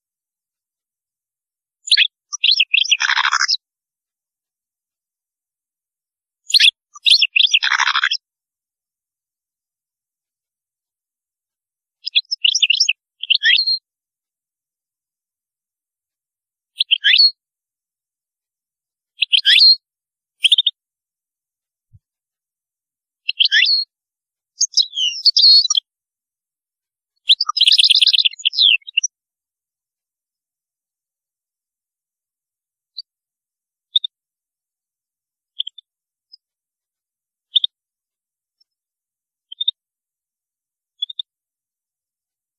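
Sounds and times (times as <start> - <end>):
European goldfinch song: 1.7 - 3.7, 6.4 - 8.3, 11.9 - 13.9, 16.7 - 17.4, 19.0 - 20.9, 23.1 - 26.0, 26.8 - 29.2, 32.8 - 33.2, 33.8 - 34.2, 35.4 - 39.9, 40.8 - 41.4.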